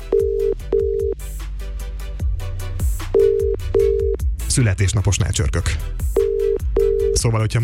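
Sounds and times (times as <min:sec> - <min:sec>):
telephone ringing beeps from a radio studio: 0:00.0 - 0:01.2, 0:03.2 - 0:04.2, 0:06.2 - 0:07.2
thumping music bed: 0:00.0 - 0:07.6
speech: 0:04.6 - 0:06.1, 0:07.2 - 0:07.6.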